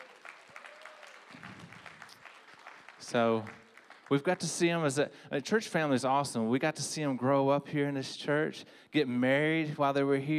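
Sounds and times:
audience clapping: 0:00.0 - 0:04.7
speech: 0:03.1 - 0:10.3.

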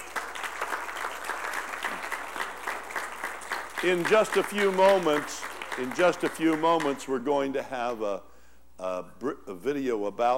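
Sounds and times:
audience applause: 0:00.0 - 0:07.0
speech: 0:03.8 - 0:10.3.

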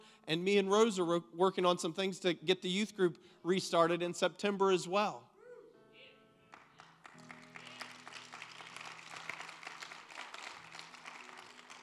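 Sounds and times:
speech: 0:00.3 - 0:05.3
audience clapping hands: 0:06.5 - 0:11.8.

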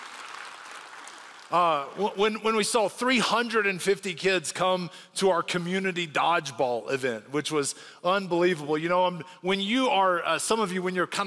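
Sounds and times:
audience applause: 0:00.0 - 0:02.1
speech: 0:01.5 - 0:11.2.

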